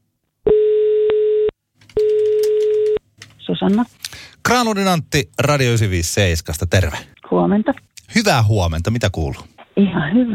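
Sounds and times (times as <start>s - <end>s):
telephone dial tone while placing a call: 0.5s - 3.0s
speech: 3.5s - 10.3s.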